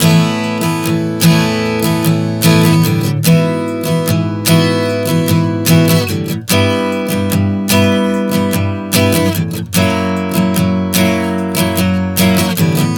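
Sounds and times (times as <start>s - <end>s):
acoustic guitar chord progression Asus9 E Em F#7 at 74 BPM: 0.0s - 12.9s.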